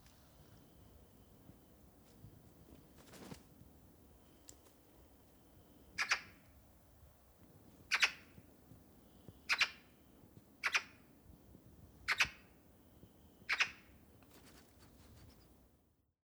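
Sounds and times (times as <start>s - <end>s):
Eurasian magpie Pica pica giving harsh rasping calls: 6.0s - 6.4s, 7.9s - 8.3s, 10.6s - 11.0s, 13.5s - 13.9s.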